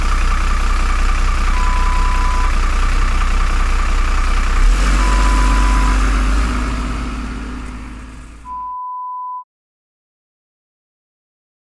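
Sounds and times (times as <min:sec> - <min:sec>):
bus engine: 0:00.0 - 0:08.7.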